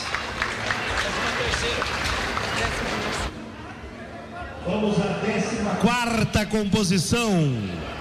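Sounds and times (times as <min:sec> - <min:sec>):
audience applause: 0:00.0 - 0:03.4
speech: 0:01.6 - 0:02.0, 0:04.6 - 0:07.9.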